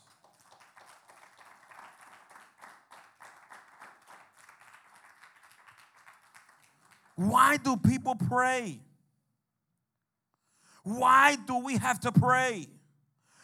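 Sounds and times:
audience applause: 0:00.0 - 0:07.6
speech: 0:07.2 - 0:08.9, 0:10.8 - 0:12.8.

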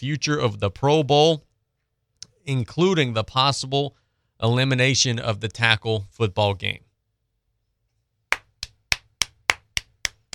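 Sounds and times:
speech: 0:00.0 - 0:01.5, 0:02.4 - 0:06.8
hand clapping: 0:08.3 - 0:10.3.

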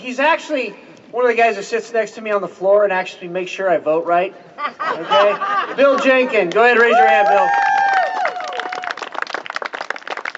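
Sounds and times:
speech: 0:00.0 - 0:07.7
laughter: 0:04.6 - 0:06.9
clapping: 0:06.5 - 0:10.3.

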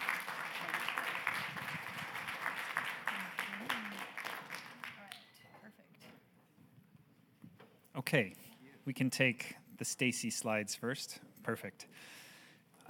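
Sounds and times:
crowd applauding: 0:00.0 - 0:05.3
speech: 0:08.1 - 0:12.2.

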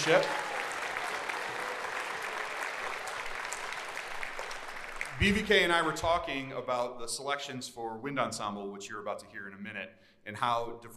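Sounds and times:
speech: 0:00.0 - 0:00.4, 0:05.2 - 0:10.9
audience applause: 0:00.0 - 0:06.0.

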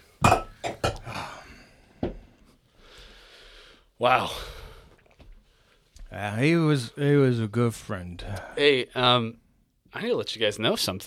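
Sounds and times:
glasses clinking together in a toast: 0:00.2 - 0:01.0
speech: 0:04.0 - 0:04.6, 0:06.2 - 0:11.0.

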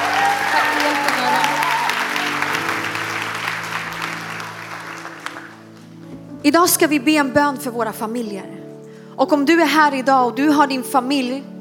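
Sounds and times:
audience applause: 0:00.0 - 0:05.9
speech: 0:06.4 - 0:08.6, 0:09.2 - 0:11.5.

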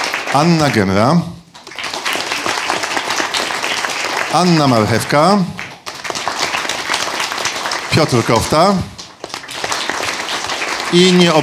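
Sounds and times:
audience applause: 0:00.0 - 0:11.4
speech: 0:00.3 - 0:01.3, 0:04.3 - 0:05.6, 0:08.0 - 0:08.9, 0:10.9 - 0:11.4.

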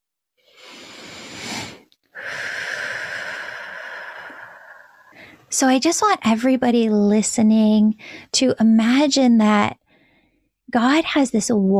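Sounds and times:
deep breathing in and out: 0:00.4 - 0:05.5, 0:09.9 - 0:10.6
speech: 0:05.5 - 0:09.8, 0:10.7 - 0:11.7.

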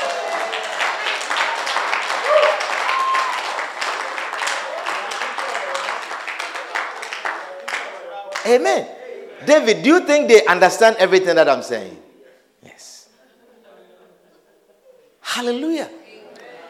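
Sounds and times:
crowd clapping hands: 0:00.0 - 0:08.6
speech: 0:08.5 - 0:12.0, 0:15.4 - 0:16.0.

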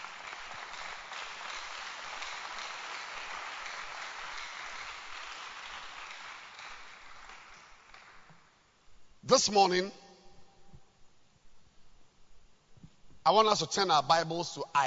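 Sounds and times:
church congregation clapping hands during a morning service: 0:00.0 - 0:08.6
speech: 0:09.3 - 0:10.0, 0:13.3 - 0:14.8.

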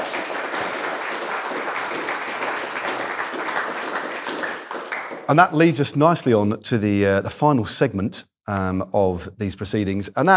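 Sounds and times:
audience applause: 0:00.0 - 0:05.6
speech: 0:05.3 - 0:10.3.

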